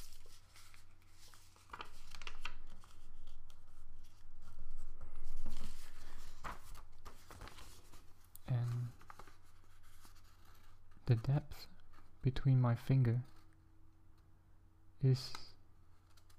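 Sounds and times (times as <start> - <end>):
paper folded to form a box: 0.0 - 11.2, 15.9 - 16.3
speech: 11.1 - 13.3, 15.0 - 15.5.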